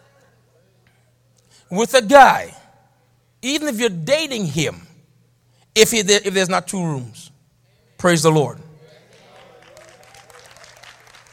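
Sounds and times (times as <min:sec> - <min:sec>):
speech: 0:01.7 - 0:02.6, 0:03.4 - 0:04.8, 0:05.8 - 0:07.3, 0:08.0 - 0:08.7
scattered applause from a partial audience: 0:09.0 - 0:11.3.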